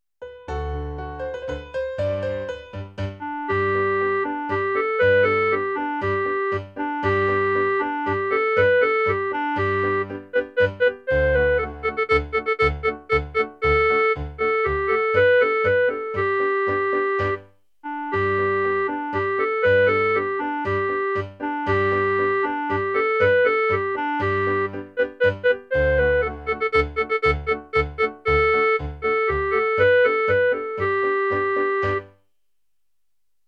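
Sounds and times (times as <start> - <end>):
clarinet playing Aragonese folk tune: 0.5 - 32.2.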